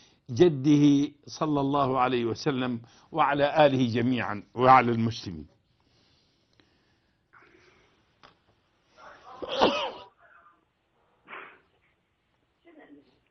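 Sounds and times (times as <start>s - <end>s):
speech: 0.3s - 5.5s
person sneezing: 9.4s - 10.2s, 11.2s - 11.7s.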